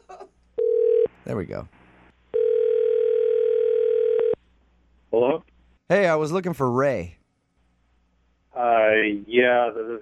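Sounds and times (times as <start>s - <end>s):
telephone dial tone while placing a call: 0.6s - 1.1s, 2.4s - 4.4s
speech: 1.3s - 1.8s, 5.1s - 7.2s, 8.6s - 10.0s.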